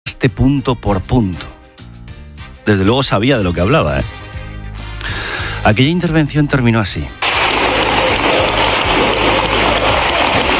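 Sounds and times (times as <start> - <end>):
speech: 0.2 - 1.6, 2.6 - 4.3, 5.6 - 7.2
ovation in parliament chamber from socialist benches: 7.1 - 10.5.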